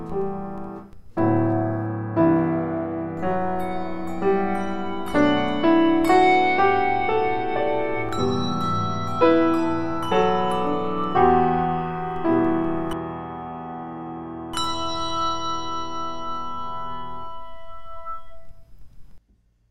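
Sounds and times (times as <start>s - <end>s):
piano: 0.0s - 19.2s
bells: 3.2s - 13.1s, 14.4s - 18.7s.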